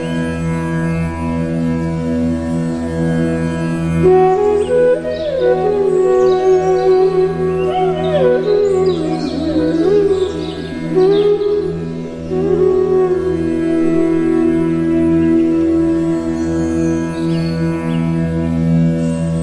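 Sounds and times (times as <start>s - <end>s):
humming drone: 0.0s - 19.4s
relaxing flute melody: 4.0s - 18.4s.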